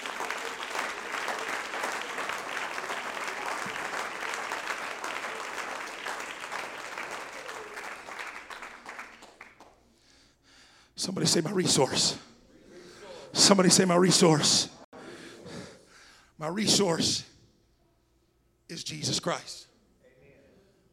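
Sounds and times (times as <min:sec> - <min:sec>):
audience clapping hands: 0:00.0 - 0:09.9
speech: 0:11.0 - 0:12.3, 0:13.5 - 0:14.8, 0:16.5 - 0:17.3, 0:19.0 - 0:19.7.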